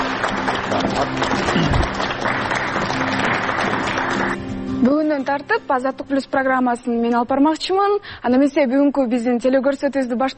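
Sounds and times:
audience applause sending off a departing presenter: 0.0s - 4.4s
speech: 0.8s - 2.1s, 4.8s - 10.3s.

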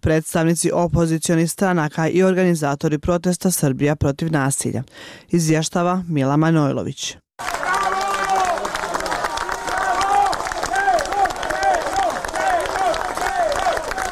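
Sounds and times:
speech: 0.0s - 7.6s
crowd of citizens clapping outside the special court in Belgrade: 7.4s - 14.0s.

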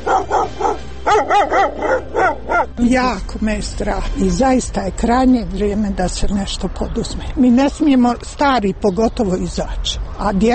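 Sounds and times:
stray dogs barking in Sarajevo: 0.0s - 2.8s
speech: 2.8s - 10.5s.

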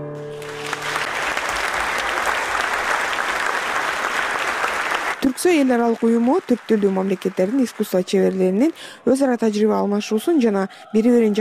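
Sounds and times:
concert audience applause after classical opera arias: 0.2s - 8.8s
speech: 5.4s - 11.3s.

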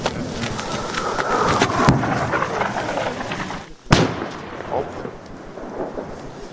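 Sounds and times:
rumbling noise: 0.0s - 6.5s
shelling explosions: 0.0s - 6.5s.

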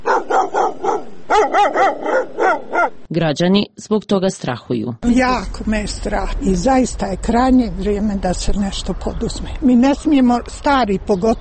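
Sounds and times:
stray dogs barking on the streets of Sarajevo: 0.0s - 3.1s
speech: 3.1s - 11.3s.

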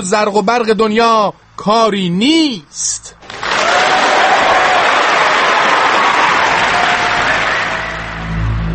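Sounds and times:
speech: 0.0s - 3.2s
audience applause: 3.2s - 8.6s.

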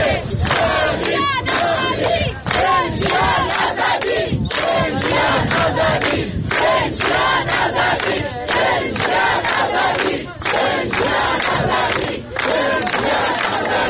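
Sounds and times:
crowd of mourners chanting slogans at Mahsa Amini's grave in Aichi cemetery, Saqqez: 0.0s - 13.8s.

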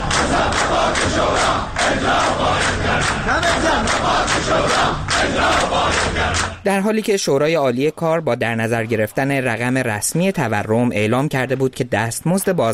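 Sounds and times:
protesting crowd of retirees shouting in the city streets: 0.0s - 6.6s
speech: 1.2s - 12.7s.

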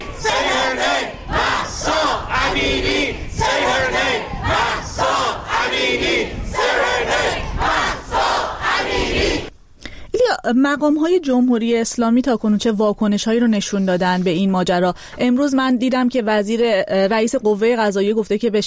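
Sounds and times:
protest crowd shouting: 0.0s - 9.5s
speech: 10.5s - 18.6s.

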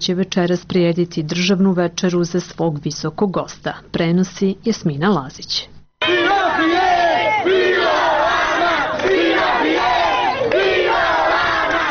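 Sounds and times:
speech: 0.0s - 6.8s
large crowd chanting and cheering in greeting: 6.0s - 11.8s.

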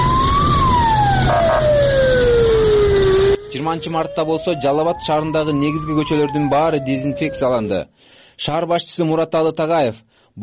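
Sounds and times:
constant rumbling background: 0.0s - 7.8s
fire engine siren as fire trucks drive through streets disinfecting: 0.0s - 7.8s
speech: 3.7s - 10.4s.

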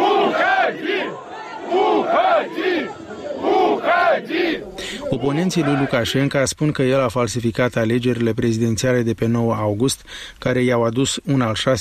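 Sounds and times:
crowd of workers chanting at rally: 0.0s - 6.3s
speech: 4.5s - 11.8s.

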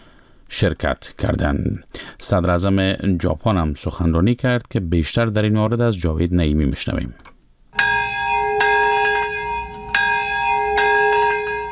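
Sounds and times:
speech: 0.6s - 7.3s
memorial bells ringing: 7.8s - 11.6s.

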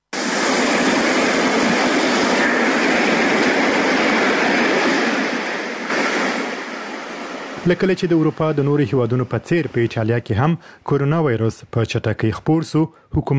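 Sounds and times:
sea waves washing onto an empty beach in a coastal Italian city: 0.2s - 8.9s
speech: 7.7s - 13.3s.

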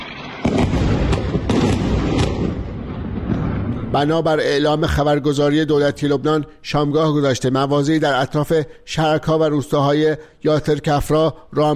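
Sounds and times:
artillery fire: 0.0s - 4.0s
explosions: 0.0s - 4.4s
speech: 3.9s - 11.7s.

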